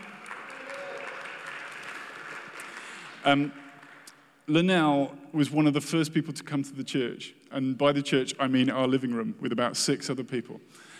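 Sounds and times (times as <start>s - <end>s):
audience applause: 0.0s - 3.2s
speech: 3.2s - 3.6s, 4.5s - 10.9s.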